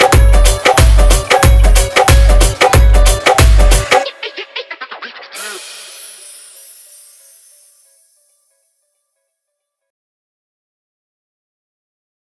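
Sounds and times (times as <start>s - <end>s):
dhol remix of a Punjabi song: 0.0s - 8.4s.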